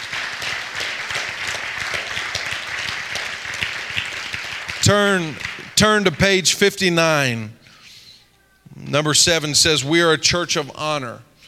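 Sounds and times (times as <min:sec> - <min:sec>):
audience clapping hands: 0:00.0 - 0:06.5
speech: 0:04.9 - 0:07.6, 0:08.9 - 0:11.3.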